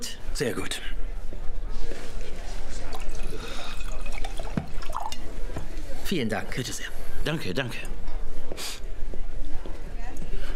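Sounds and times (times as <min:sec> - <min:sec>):
murmur of voices: 0:00.0 - 0:10.5
speech: 0:00.4 - 0:01.0, 0:06.1 - 0:08.0
faint drips: 0:02.9 - 0:05.3
wine pouring into a glass: 0:02.9 - 0:05.3.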